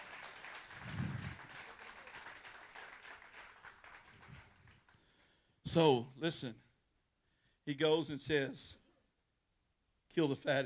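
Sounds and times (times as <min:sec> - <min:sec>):
round of applause: 0:00.0 - 0:05.3
speech: 0:05.7 - 0:06.6, 0:07.7 - 0:08.8, 0:10.2 - 0:10.6.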